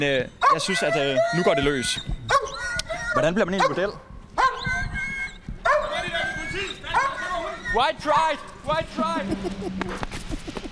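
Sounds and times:
speech: 0:00.0 - 0:02.3, 0:03.2 - 0:04.1, 0:07.7 - 0:10.2
dog barking during attack training: 0:00.4 - 0:01.3, 0:02.3 - 0:02.6, 0:03.6 - 0:04.7, 0:05.6 - 0:06.0, 0:06.9 - 0:07.3.

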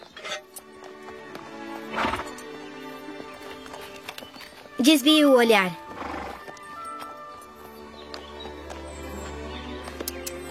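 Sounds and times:
ridden horse's hooves clopping: 0:00.0 - 0:10.5
horse snorting neighs: 0:01.8 - 0:02.4, 0:05.9 - 0:06.5
horse whinnying: 0:01.9 - 0:02.4, 0:05.9 - 0:06.6
speech: 0:04.8 - 0:05.8.

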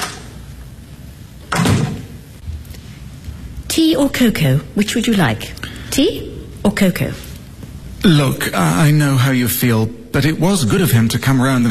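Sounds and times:
back door opening and closing: 0:00.0 - 0:00.4, 0:01.4 - 0:02.2
speech: 0:03.8 - 0:07.2, 0:08.0 - 0:11.7.

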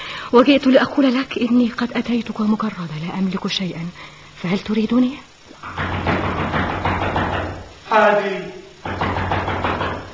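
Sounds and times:
speech: 0:00.3 - 0:06.2, 0:07.9 - 0:09.0
man knocking on a door: 0:05.6 - 0:07.8, 0:08.8 - 0:10.1.

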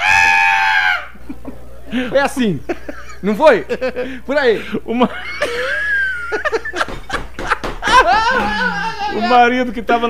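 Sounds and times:
person imitating a loud high-pitched scream: 0:00.0 - 0:01.2, 0:07.9 - 0:09.4
laughter: 0:01.0 - 0:09.6
speech: 0:01.9 - 0:05.4, 0:09.2 - 0:10.0.

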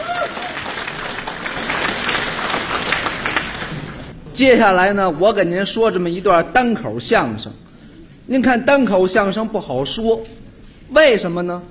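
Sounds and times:
audience applause welcoming crosstalk comedians onto a comedy stage: 0:00.0 - 0:04.2
speech: 0:04.4 - 0:07.6, 0:08.3 - 0:11.6.

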